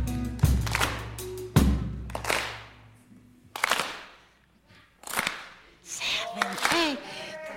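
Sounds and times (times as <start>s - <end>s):
audience keeping a rhythmic soul clap: 0.0s - 7.2s.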